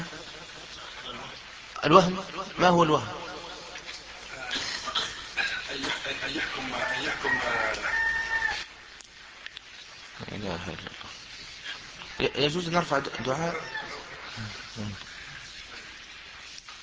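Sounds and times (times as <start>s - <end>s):
speech: 1.8s - 3.2s, 10.4s - 10.9s, 12.2s - 13.8s, 14.4s - 15.1s
laughter: 2.7s - 7.8s, 12.6s - 14.9s
rooster crowing: 6.3s - 8.8s, 13.1s - 14.6s.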